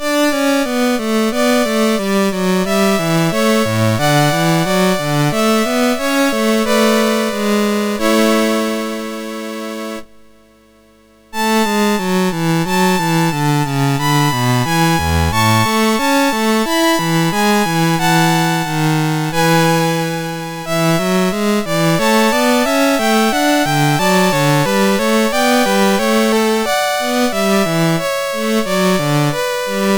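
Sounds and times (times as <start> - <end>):
trio sonata on MOS6581R2 sound chip: 0.0 - 29.9.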